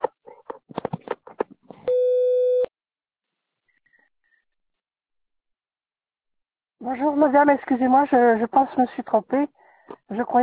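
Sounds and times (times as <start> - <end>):
voicemail beep: 1.9 - 2.7
speech: 6.9 - 10.4.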